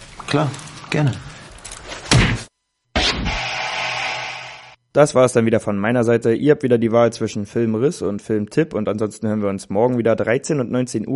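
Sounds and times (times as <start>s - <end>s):
speech: 0.3s - 1.3s, 5.0s - 11.1s
punch hit: 2.1s - 4.7s.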